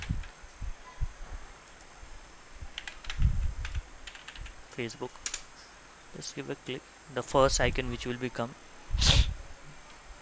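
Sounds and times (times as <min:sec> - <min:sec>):
typing on a computer keyboard: 0:02.8 - 0:05.4
speech: 0:04.8 - 0:05.3, 0:06.2 - 0:09.2.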